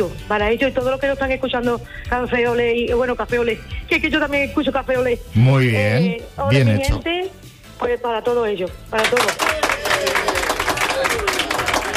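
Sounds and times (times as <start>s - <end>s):
speech: 0.0s - 9.7s
audience applause: 9.0s - 11.9s.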